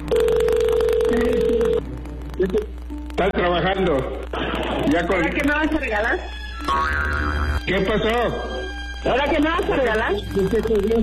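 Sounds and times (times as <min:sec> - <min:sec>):
telephone tone as a call is dialed: 0:00.0 - 0:01.8
noise: 0:00.0 - 0:11.0
speech: 0:02.4 - 0:11.0.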